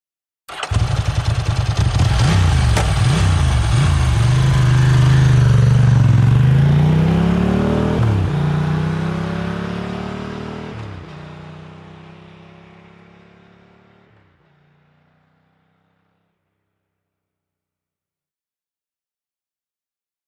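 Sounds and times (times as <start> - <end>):
motorcycles road racing: 0.5 - 16.6.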